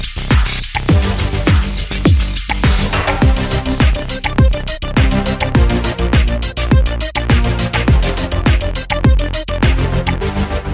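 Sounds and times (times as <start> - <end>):
seven synthesizers: 0.2 - 10.7.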